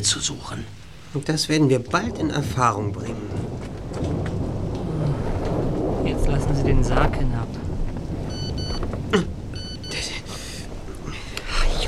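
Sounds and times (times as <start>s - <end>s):
speech: 0.0s - 4.2s, 6.1s - 7.6s, 9.1s - 9.3s
low rumble: 0.0s - 11.8s
mobile phone text message alert: 9.6s - 10.0s.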